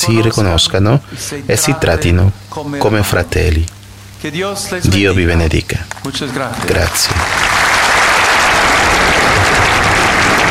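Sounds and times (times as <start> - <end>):
speech: 0.0 - 7.4
large crowd applause in a public square: 5.9 - 10.5.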